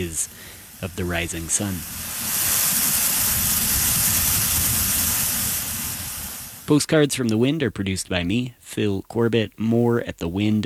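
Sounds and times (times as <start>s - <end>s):
speech: 0.0s - 2.2s, 6.7s - 10.6s
geyser erupting: 0.0s - 7.4s.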